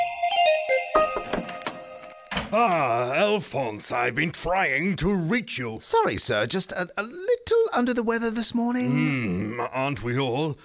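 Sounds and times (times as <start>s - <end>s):
jingle bells ringing: 0.0s - 2.3s
speech: 2.5s - 10.6s.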